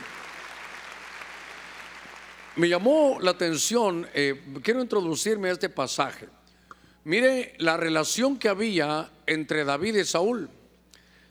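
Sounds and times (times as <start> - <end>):
audience applauding: 0.0 - 2.6
speech: 2.6 - 6.4, 7.0 - 10.6.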